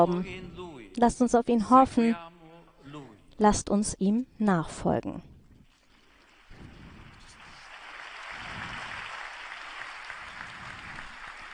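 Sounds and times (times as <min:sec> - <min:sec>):
speech: 0:00.0 - 0:02.3, 0:03.4 - 0:05.3
crowd applause after sermon: 0:06.0 - 0:11.5.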